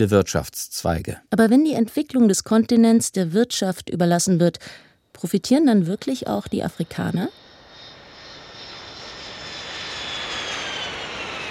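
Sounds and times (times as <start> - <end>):
speech: 0.0 - 7.5
airplane in flight engine drone: 5.7 - 11.5.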